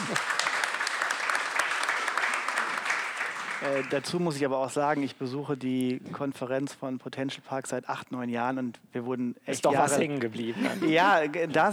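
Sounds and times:
laughter: 0:00.0 - 0:00.4, 0:10.4 - 0:11.7
crowd applause: 0:00.0 - 0:04.1
speech: 0:03.6 - 0:11.7.

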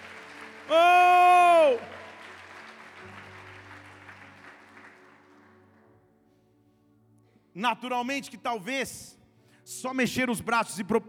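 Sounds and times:
audience applauding: 0:00.0 - 0:05.8
speech: 0:00.7 - 0:01.0, 0:07.6 - 0:11.0.

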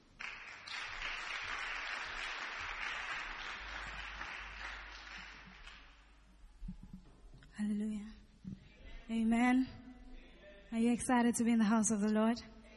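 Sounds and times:
audience round of applause: 0:00.0 - 0:06.2
speech: 0:07.6 - 0:08.2, 0:09.1 - 0:09.8, 0:10.7 - 0:12.6.

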